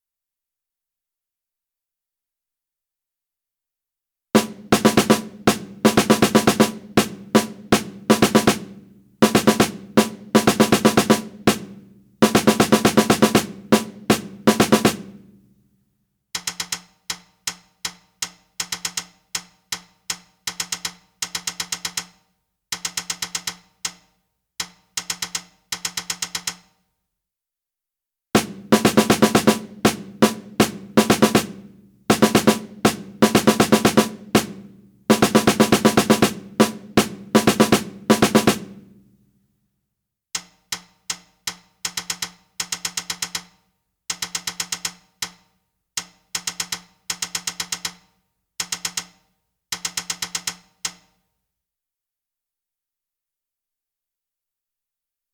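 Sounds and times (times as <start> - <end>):
snare drum: 4.4 - 15.4, 28.4 - 39.2.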